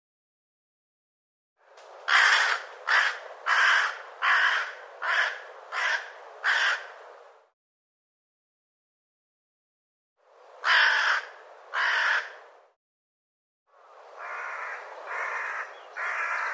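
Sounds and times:
bird giving loud harsh caws: 2.1s - 7.0s, 10.6s - 12.4s, 14.2s - 16.5s.

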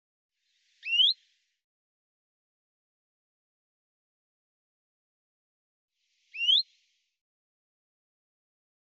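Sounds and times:
Common chaffinch calls: 0.8s - 1.2s, 6.3s - 6.6s.

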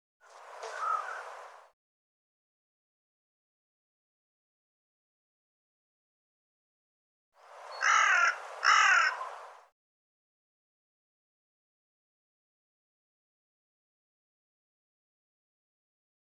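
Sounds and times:
bird harsh raspy double call: 0.7s - 1.2s, 7.7s - 9.4s.

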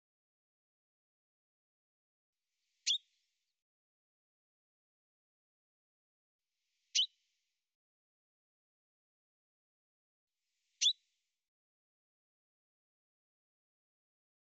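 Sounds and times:
bird chirping: 2.8s - 3.1s, 6.9s - 7.2s, 10.8s - 11.0s.

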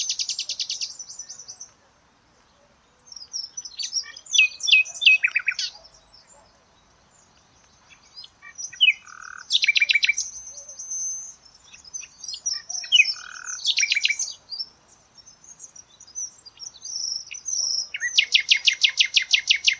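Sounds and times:
bird chirping and twittering: 0.0s - 19.7s.

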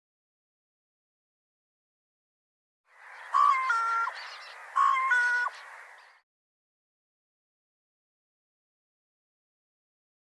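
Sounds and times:
bird nasal calls: 3.1s - 6.2s.

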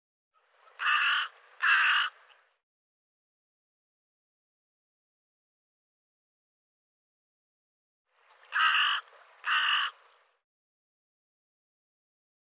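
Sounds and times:
bird giving harsh raspy caws: 0.4s - 2.4s, 8.3s - 10.2s.

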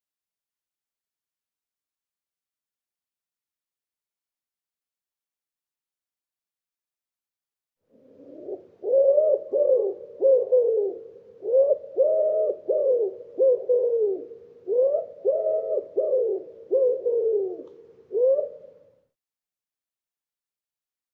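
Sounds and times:
Common Wood Pigeon cooing: 7.9s - 18.9s.

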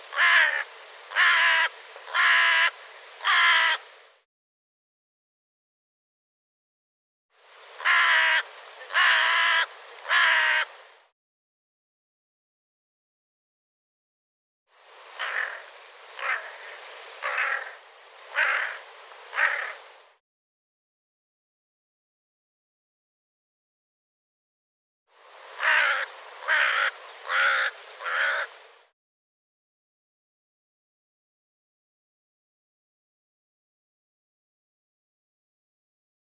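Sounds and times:
hiss: 0.0s - 4.3s, 7.3s - 11.1s, 14.7s - 20.2s, 25.1s - 28.9s
bird cawing: 0.1s - 3.8s, 7.8s - 10.7s, 15.2s - 19.8s, 25.6s - 28.6s.

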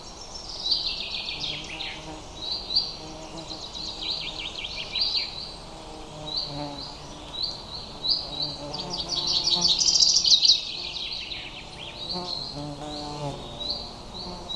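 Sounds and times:
bird chirping: 0.0s - 14.5s.

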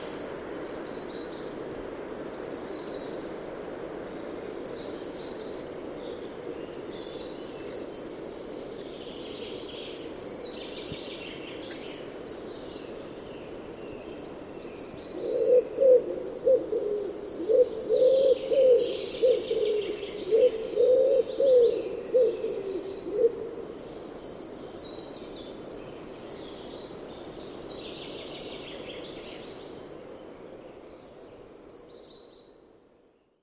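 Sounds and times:
bird cooing with soft low hollow notes: 15.1s - 23.6s.

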